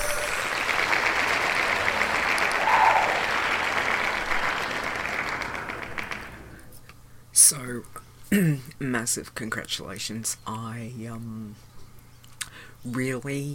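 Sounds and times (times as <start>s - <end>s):
whistle or shout from the crowd: 0.0s - 0.7s, 2.6s - 3.4s
crowd applauding and cheering: 0.0s - 6.6s
speech: 7.5s - 11.7s, 12.8s - 13.5s.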